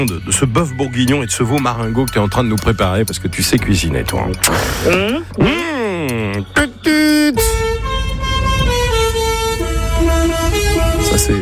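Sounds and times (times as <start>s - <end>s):
speech: 0.0s - 5.7s, 6.4s - 6.7s, 11.2s - 11.4s
low engine rumble: 0.0s - 11.4s
truck air horn: 7.4s - 11.4s.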